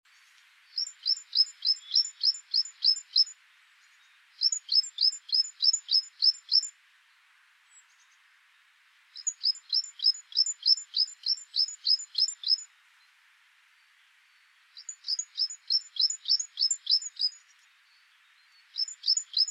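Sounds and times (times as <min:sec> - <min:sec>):
great tit calls: 0:00.7 - 0:06.7, 0:09.2 - 0:12.7, 0:14.8 - 0:19.4.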